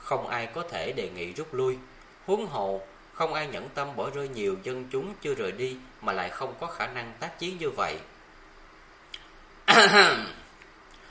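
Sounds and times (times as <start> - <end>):
speech: 0.1 - 8.1, 9.8 - 10.4
dry cough: 9.7 - 10.5.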